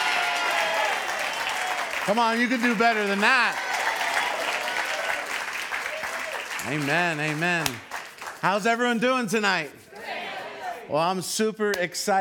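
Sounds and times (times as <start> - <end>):
audience clapping loudly: 0.0 - 9.0
speech: 2.1 - 3.7, 6.6 - 9.8, 10.9 - 12.1.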